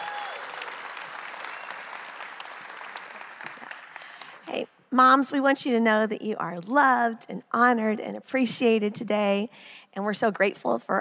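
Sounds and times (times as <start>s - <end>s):
person whooping: 0.0s - 0.8s
audience applauding and cheering: 0.0s - 4.5s
speech: 4.5s - 10.9s.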